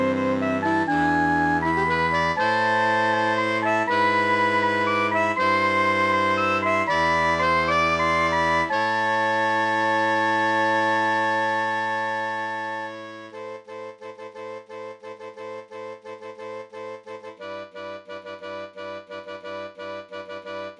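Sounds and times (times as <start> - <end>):
MIDI brass instruments playing medieval music: 0.0 - 13.3.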